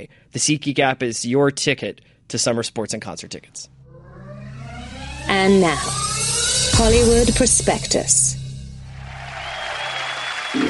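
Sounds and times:
speech: 0:00.0 - 0:03.8, 0:05.3 - 0:08.4
applause: 0:08.9 - 0:10.6.

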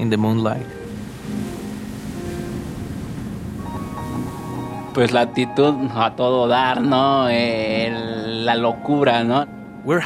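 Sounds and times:
speech: 0:00.0 - 0:01.5, 0:05.0 - 0:10.0
waves breaking with a rumble: 0:00.0 - 0:07.4.

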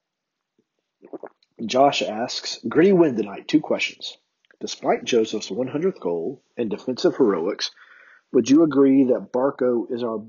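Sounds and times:
person sipping coffee: 0:01.0 - 0:01.4
gulping swallow: 0:01.0 - 0:01.5
speech: 0:01.0 - 0:10.2.

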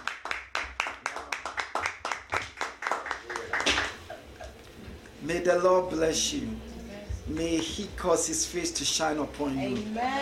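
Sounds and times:
crowd clapping: 0:00.0 - 0:04.6
speech: 0:05.3 - 0:06.7, 0:07.3 - 0:10.1.

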